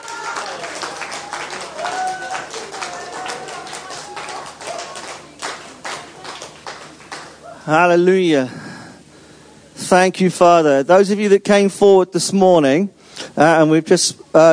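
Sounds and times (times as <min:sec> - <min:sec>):
high-pitched whoop or whistle: 0:00.0 - 0:05.0
crowd clapping: 0:00.0 - 0:07.7
speech: 0:07.7 - 0:08.6, 0:09.9 - 0:14.5.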